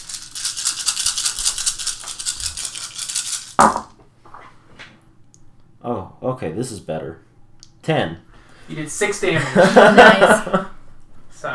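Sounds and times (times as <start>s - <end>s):
dice rattling and clattering: 0.0s - 3.9s
speech: 5.8s - 7.3s, 7.9s - 10.8s
laughter: 9.3s - 10.8s.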